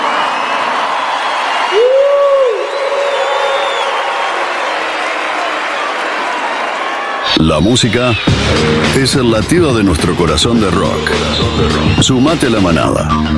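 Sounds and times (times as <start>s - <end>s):
loud audience applause: 0.0s - 8.2s
speech: 7.4s - 13.3s.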